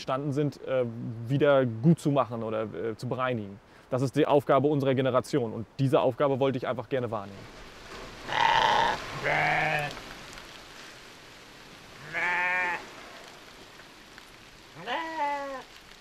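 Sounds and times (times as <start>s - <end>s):
speech: 0.0s - 7.6s
rain: 0.0s - 15.9s
sheep and lambs bleating: 8.3s - 10.0s, 12.0s - 12.8s, 14.8s - 15.6s.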